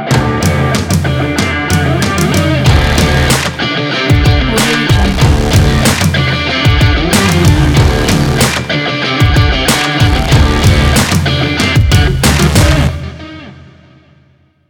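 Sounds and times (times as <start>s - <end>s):
sport breakbeat: 0.1s - 13.2s.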